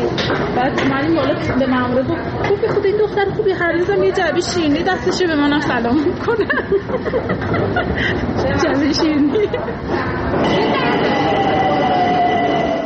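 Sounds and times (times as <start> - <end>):
Tehran metro train rumbling: 0.0 - 12.8
speech: 0.6 - 11.4
people talking and chattering: 0.6 - 12.8
laughter: 6.0 - 10.0
sustained whine: 10.1 - 12.8.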